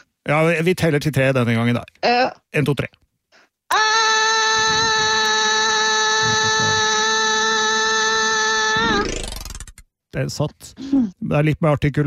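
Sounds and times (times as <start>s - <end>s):
speech: 0.3s - 3.0s, 3.7s - 4.8s, 10.1s - 12.0s
person screaming in a stairwell: 3.7s - 9.0s.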